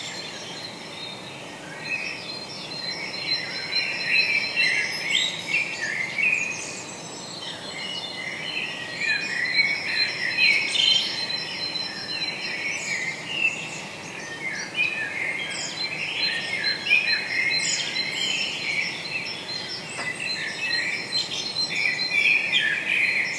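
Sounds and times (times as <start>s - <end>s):
birds singing in the morning: 0.0s - 23.3s.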